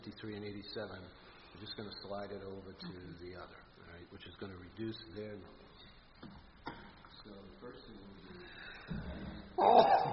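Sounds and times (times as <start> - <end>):
speech: 0.0 - 6.3, 7.2 - 8.6, 9.6 - 10.1
person sneezing: 9.6 - 10.1.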